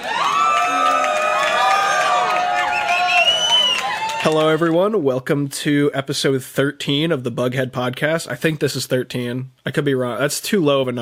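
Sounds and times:
crowd cheering for a guest's introduction: 0.0s - 5.0s
whistles: 2.6s - 4.0s
speech: 4.3s - 11.0s.

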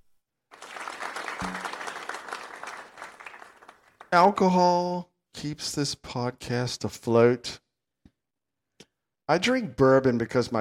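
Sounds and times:
crowd applause and cheering: 0.5s - 4.1s
speech: 4.1s - 7.6s, 9.3s - 10.5s.

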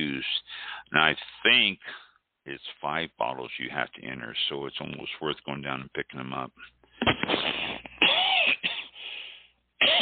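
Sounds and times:
speech: 0.2s - 7.7s
sinus cough: 7.0s - 9.1s.

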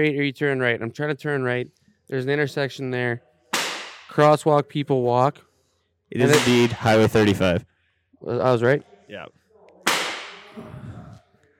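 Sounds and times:
speech: 0.0s - 3.3s, 4.1s - 5.5s, 6.1s - 9.4s
single sharp gunshot crack: 3.6s - 4.1s, 6.2s - 6.8s, 9.9s - 10.5s.

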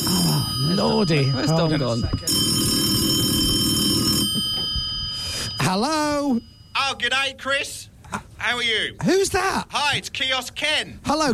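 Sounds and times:
telephone ringing: 0.0s - 7.3s
faint hum: 0.0s - 11.3s
speech: 0.8s - 3.2s, 5.7s - 11.3s.

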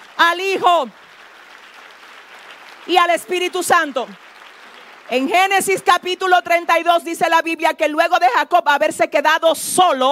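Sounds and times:
audience applause: 0.0s - 6.7s
speech: 0.2s - 1.0s, 2.9s - 4.2s, 5.1s - 10.1s.

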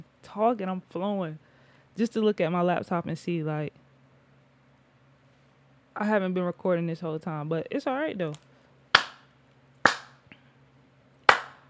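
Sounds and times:
speech: 0.3s - 3.8s, 6.0s - 8.5s
hand clap: 9.0s - 10.3s, 11.2s - 11.6s.

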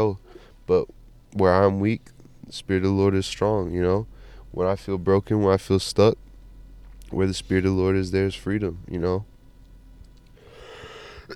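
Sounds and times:
speech: 0.0s - 6.2s, 7.1s - 9.3s
person coughing: 10.8s - 11.3s.

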